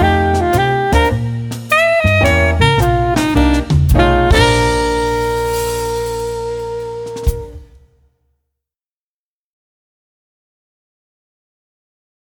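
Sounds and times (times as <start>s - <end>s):
soloist performing: 0.0s - 7.8s.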